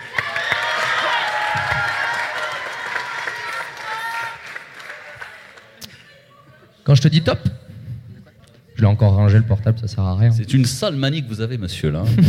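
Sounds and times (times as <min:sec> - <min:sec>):
audience cheering: 0:00.0 - 0:05.8
speech: 0:06.9 - 0:07.6, 0:08.8 - 0:12.2
laughter: 0:12.0 - 0:12.2.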